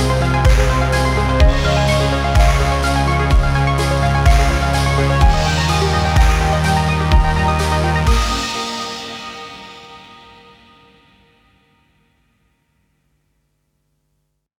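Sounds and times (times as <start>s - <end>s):
beatdown music: 0.0s - 10.1s.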